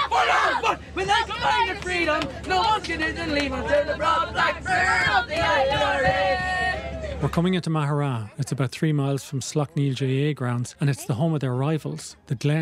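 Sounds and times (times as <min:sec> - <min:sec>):
young lads singing along with rebel songs on a bus: 0:00.0 - 0:06.8
speech: 0:02.1 - 0:06.6, 0:07.2 - 0:12.5.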